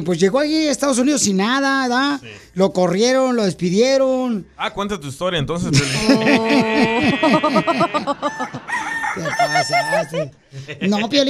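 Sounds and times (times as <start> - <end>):
speech: 0.0 - 11.2
laughter: 5.6 - 11.2
rooster crowing sound effect: 6.4 - 10.3.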